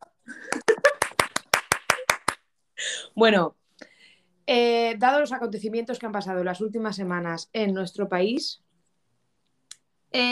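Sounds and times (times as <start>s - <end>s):
one person clapping hands: 0.3s - 2.5s
speech: 3.2s - 3.6s, 4.5s - 8.6s, 10.1s - 10.3s.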